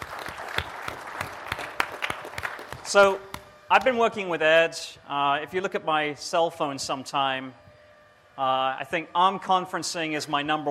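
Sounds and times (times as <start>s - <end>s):
audience applause: 0.0s - 3.3s
speech: 2.9s - 7.6s, 8.4s - 10.6s.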